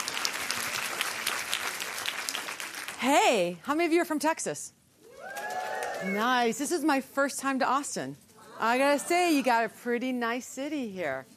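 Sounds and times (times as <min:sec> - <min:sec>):
audience applause: 0:00.0 - 0:03.0, 0:05.2 - 0:06.2
speech: 0:03.0 - 0:04.8, 0:06.0 - 0:11.3.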